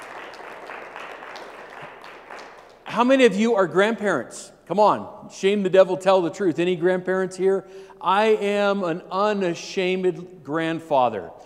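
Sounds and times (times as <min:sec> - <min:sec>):
audience round of applause: 0:00.0 - 0:02.9
speech: 0:02.9 - 0:11.4.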